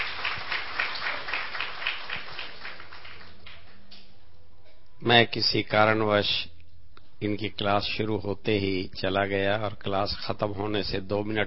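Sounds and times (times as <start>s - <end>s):
audience clapping: 0.0s - 3.9s
speech: 5.0s - 6.5s, 7.2s - 11.4s.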